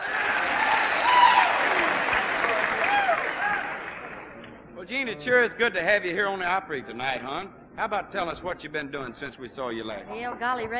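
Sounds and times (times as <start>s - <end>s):
crowd cheers: 0.0s - 4.3s
audience applause at the Grand Ole Opry: 0.0s - 4.4s
speech: 5.0s - 10.7s.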